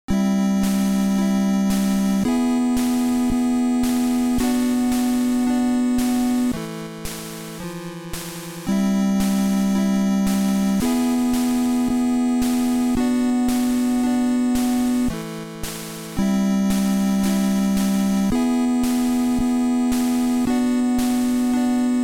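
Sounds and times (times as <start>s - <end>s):
chipmusic loop: 0.1s - 22.0s.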